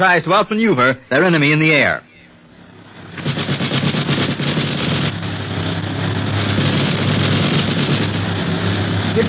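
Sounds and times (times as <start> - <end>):
speech: 0.0 - 2.1
low plane engine drone: 0.0 - 9.2
machine gun fire from a plane: 3.0 - 5.3, 6.1 - 8.3.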